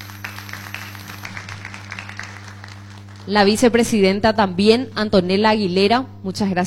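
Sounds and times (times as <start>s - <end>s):
audience applause: 0.0s - 3.3s
speech: 3.2s - 6.6s.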